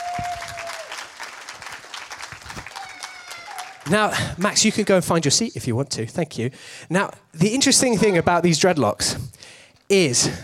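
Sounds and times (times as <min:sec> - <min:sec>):
audience applause: 0:00.0 - 0:04.2
speech: 0:03.9 - 0:09.3, 0:09.9 - 0:10.4.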